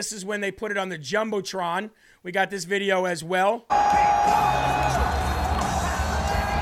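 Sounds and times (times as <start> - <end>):
speech: 0.0 - 5.2
arena crowd cheering wildly: 3.7 - 6.6.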